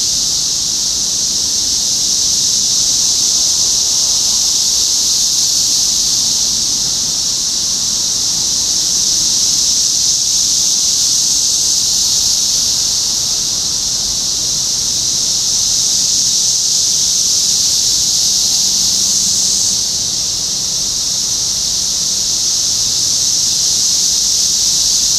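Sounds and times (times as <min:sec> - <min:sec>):
cicada chorus: 0:00.0 - 0:25.1.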